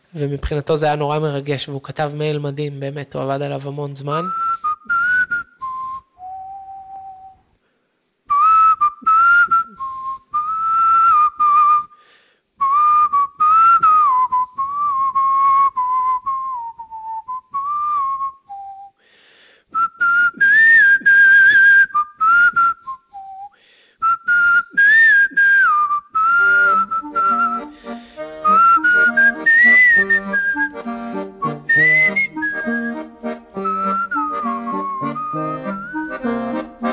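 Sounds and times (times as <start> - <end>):
speech: 0.1 - 5.0
person whistling a melody: 4.2 - 7.5, 8.3 - 12.0, 12.6 - 19.0, 19.7 - 36.9.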